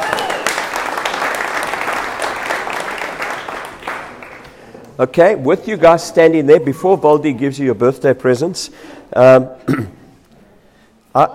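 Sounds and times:
crowd applauding: 0.0s - 4.6s
speech: 5.0s - 10.0s, 11.2s - 11.3s.

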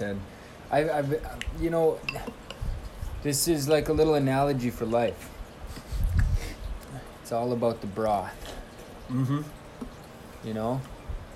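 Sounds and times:
speech: 0.0s - 2.4s, 3.2s - 5.3s, 7.3s - 9.6s, 10.4s - 10.9s
spoon clinking in a soup bowl: 2.0s - 2.6s.

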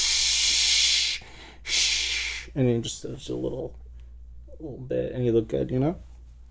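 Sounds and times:
hair spray aerosol can hissing: 0.0s - 2.5s
speech: 2.6s - 3.8s, 4.6s - 6.4s.

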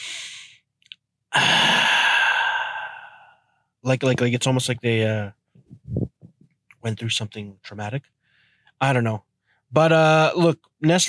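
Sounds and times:
person imitating a refreshed ahh exhale after drinking water: 0.0s - 0.6s, 1.3s - 3.4s
speech: 3.8s - 6.1s, 6.8s - 8.2s, 8.8s - 11.0s.

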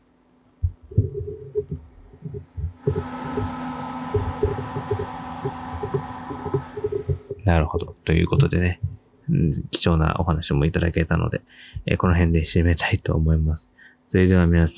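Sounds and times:
computer cooling fan whirring: 0.4s - 9.9s
low irregular thumping pulses: 0.6s - 9.6s
speech: 7.5s - 14.7s.

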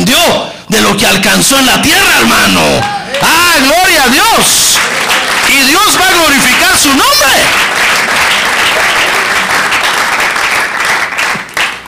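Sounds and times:
speech: 0.1s - 9.2s
half-hearted audience applause: 2.8s - 11.8s.

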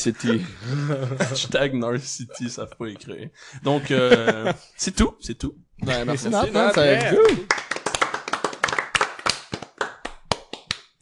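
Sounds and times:
laughter: 0.0s - 4.7s
speech: 0.0s - 7.6s
small group clapping hands: 6.4s - 11.0s.

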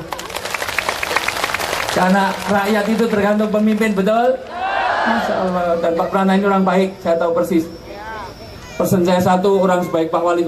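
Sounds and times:
crowd applauding: 0.0s - 4.6s
speech: 2.0s - 7.8s, 8.8s - 10.4s.

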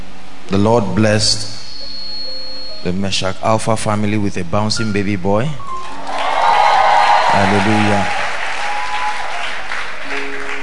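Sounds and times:
speech: 0.5s - 1.6s, 2.8s - 6.0s, 7.4s - 8.2s
crowd clapping: 5.7s - 10.6s.

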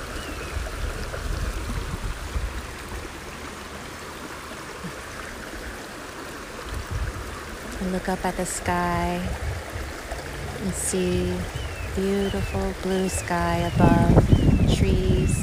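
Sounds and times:
stream water tumbling over rocks: 0.0s - 15.4s
speech: 7.8s - 9.6s, 10.6s - 14.2s, 14.8s - 15.4s.

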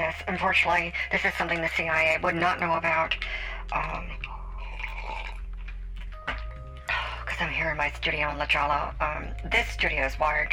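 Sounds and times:
speech: 0.1s - 4.4s, 7.4s - 10.5s
sipping wine: 3.2s - 7.3s.

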